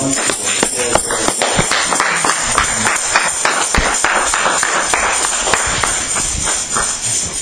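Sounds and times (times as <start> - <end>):
audience hand clapping: 0.2 - 7.2.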